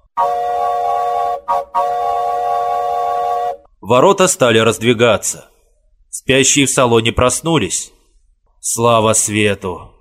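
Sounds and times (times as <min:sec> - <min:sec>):
train signal whistle: 0:00.0 - 0:03.7
speech: 0:00.2 - 0:00.6, 0:01.5 - 0:02.2, 0:03.9 - 0:05.5, 0:06.2 - 0:08.0, 0:08.6 - 0:09.9.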